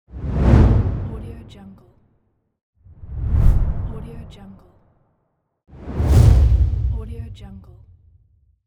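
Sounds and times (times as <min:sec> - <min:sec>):
low swoosh: 0:00.1 - 0:01.3, 0:02.9 - 0:04.4, 0:05.8 - 0:08.2.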